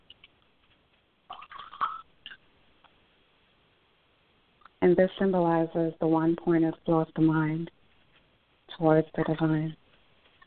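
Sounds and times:
water poured from one vessel to another: 1.3s - 2.4s
speech: 4.8s - 7.8s, 8.8s - 9.8s.

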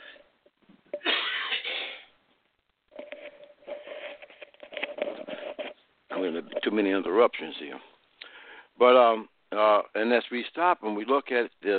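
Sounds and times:
person coughing: 1.0s - 2.1s
speech: 6.6s - 7.9s, 8.8s - 11.7s.

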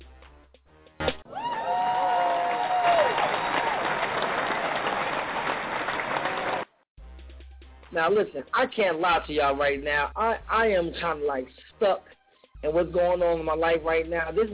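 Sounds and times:
applause: 1.3s - 6.8s
speech: 8.0s - 14.5s.

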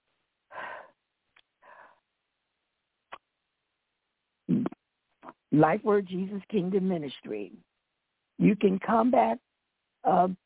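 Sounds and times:
nervous person breathing in and out: 0.5s - 1.0s, 1.6s - 2.1s
speech: 5.5s - 7.7s, 8.4s - 10.4s.

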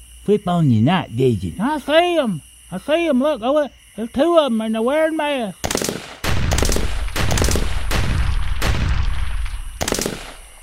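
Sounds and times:
speech: 0.3s - 5.9s
gunfire: 5.6s - 10.6s.

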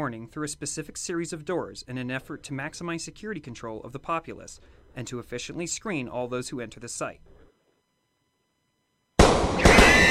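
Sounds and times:
speech: 0.0s - 7.3s
firearm gunshot muzzle blast: 9.2s - 10.0s.

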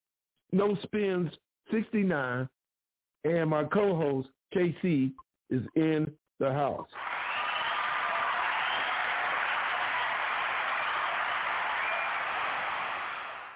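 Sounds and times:
speech: 0.5s - 2.6s, 3.2s - 7.1s
church-style clapping: 7.0s - 13.5s.

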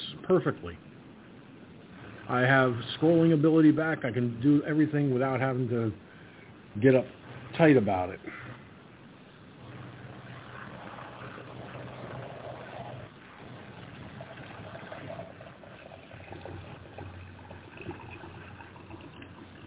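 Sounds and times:
speech: 0.3s - 0.9s, 2.3s - 6.0s, 6.8s - 8.4s
coffee being poured into a cup: 10.2s - 19.6s.

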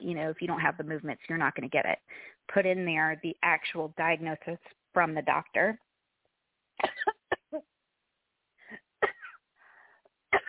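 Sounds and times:
speech: 0.0s - 5.9s, 6.8s - 7.7s
person coughing and choking: 6.8s - 7.6s, 8.7s - 9.4s.

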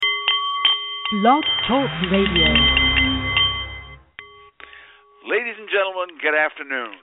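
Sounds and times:
Nepalese meditation bowl chiming: 0.0s - 5.3s
speech: 1.1s - 2.8s, 5.3s - 7.0s.

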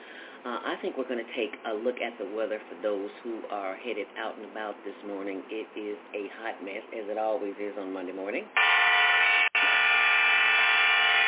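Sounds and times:
speech: 0.4s - 8.7s
car horns blaring in traffic: 8.6s - 11.2s.

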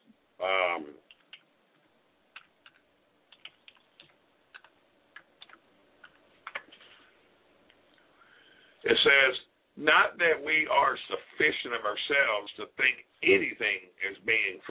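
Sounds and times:
keystroke clicks typing on a device: 1.1s - 1.4s, 2.4s - 6.7s
speech: 9.1s - 14.6s.

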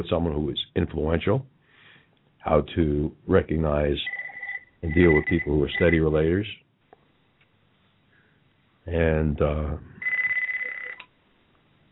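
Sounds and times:
speech: 0.0s - 1.6s, 2.4s - 4.2s, 4.8s - 6.6s, 8.8s - 9.9s
desk phone ringing in an office: 4.0s - 6.0s, 10.0s - 11.0s.

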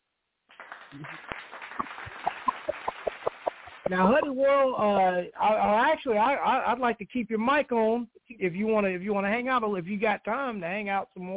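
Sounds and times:
clapping: 0.5s - 4.2s
speech: 0.9s - 1.5s, 3.9s - 11.3s.

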